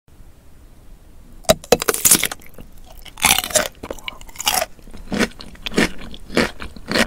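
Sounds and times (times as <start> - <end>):
eating radish: 1.5 - 7.0.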